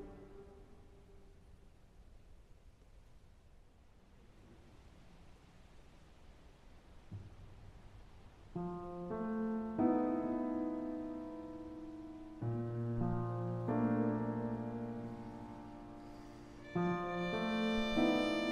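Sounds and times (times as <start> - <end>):
violin: 0.0 - 1.1, 16.0 - 18.4
piano: 0.0 - 1.8, 7.2 - 18.4.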